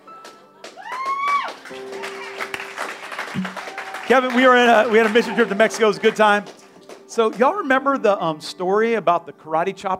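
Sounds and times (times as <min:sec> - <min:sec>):
scattered audience clapping: 0:00.0 - 0:07.8
rising whoop: 0:00.8 - 0:02.3, 0:03.5 - 0:04.2
speech: 0:01.7 - 0:02.2, 0:04.1 - 0:09.9.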